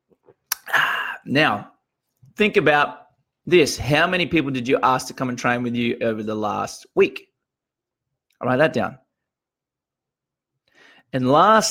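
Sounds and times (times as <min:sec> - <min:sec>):
person sipping a long black coffee: 0:00.3 - 0:01.2
speech: 0:01.2 - 0:01.7, 0:02.4 - 0:07.3, 0:08.4 - 0:09.0, 0:11.1 - 0:11.6.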